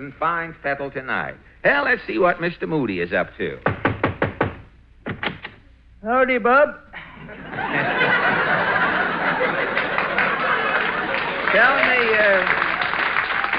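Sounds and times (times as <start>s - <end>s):
speech: 0.0s - 3.8s, 6.0s - 8.0s, 11.5s - 12.6s
crowd chuckles and laughter: 7.0s - 13.5s
audience clapping: 8.2s - 13.5s.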